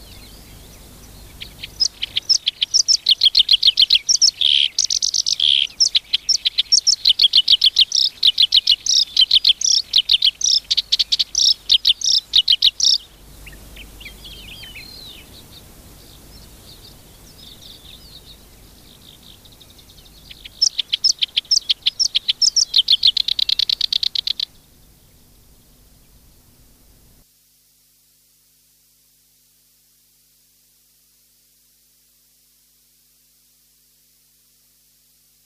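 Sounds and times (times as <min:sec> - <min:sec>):
black-browed reed warbler song: 0:00.0 - 0:24.5.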